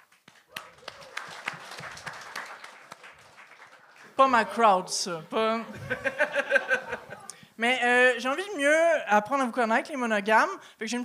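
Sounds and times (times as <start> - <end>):
audience applause: 0.0 - 4.8
speech: 4.2 - 7.0, 7.6 - 11.0
laughter: 4.4 - 7.4.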